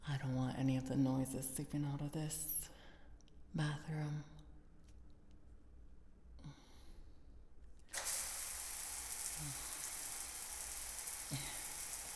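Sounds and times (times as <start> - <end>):
speech: 0.1 - 2.8, 3.5 - 4.4
shower water running: 7.9 - 12.1.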